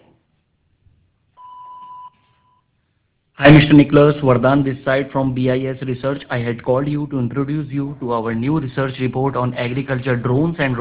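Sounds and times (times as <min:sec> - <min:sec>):
voicemail message tone beep: 0:01.4 - 0:02.7
speech: 0:03.4 - 0:10.8.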